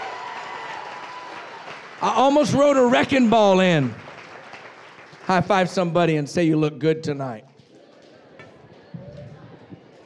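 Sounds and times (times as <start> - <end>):
audience clapping: 0.0 - 6.6
speech: 2.0 - 4.0, 5.3 - 7.5.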